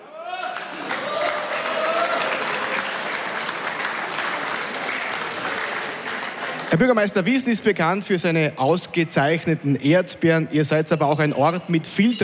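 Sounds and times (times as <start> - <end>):
audience applause: 0.2 - 7.2
speech: 6.7 - 12.2.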